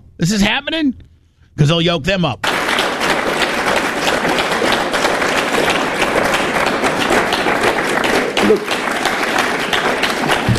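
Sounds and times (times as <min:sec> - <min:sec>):
speech: 0:00.2 - 0:02.6, 0:08.5 - 0:08.8
audience clapping: 0:02.4 - 0:10.5.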